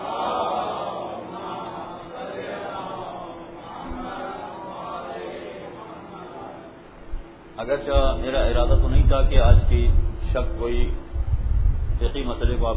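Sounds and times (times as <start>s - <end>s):
congregation reciting salawat aloud together: 0.0s - 7.5s
speech: 7.6s - 11.0s, 12.0s - 12.7s.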